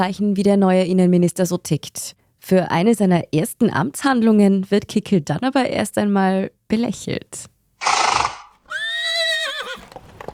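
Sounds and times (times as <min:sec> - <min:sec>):
speech: 0:00.0 - 0:08.0
horse whinnying: 0:07.8 - 0:09.9.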